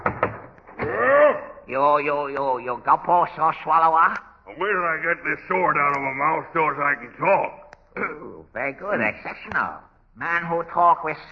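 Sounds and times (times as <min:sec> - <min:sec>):
knocking on a dressing room door backstage: 0:00.0 - 0:01.0
speech: 0:01.7 - 0:11.3.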